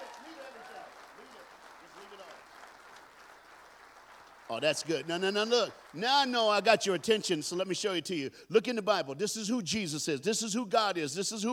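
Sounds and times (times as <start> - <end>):
audience applauding: 0.0 - 7.8
speech: 4.5 - 11.5.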